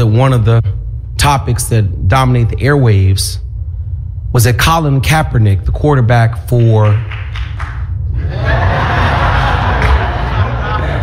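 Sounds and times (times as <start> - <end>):
speech: 0.1 - 3.4, 4.3 - 7.5
clapping: 6.8 - 7.9, 9.7 - 10.3
laughter: 8.2 - 11.0.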